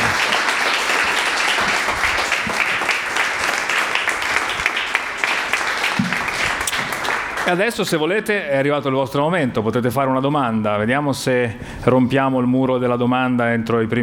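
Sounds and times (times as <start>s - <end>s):
crowd applause: 0.0s - 8.0s
speech: 7.5s - 14.0s.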